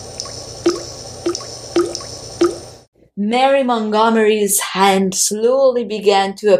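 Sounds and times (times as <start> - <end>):
mirror liquefying, dripping squishing liquid: 0.1 - 2.8
speech: 3.2 - 6.5.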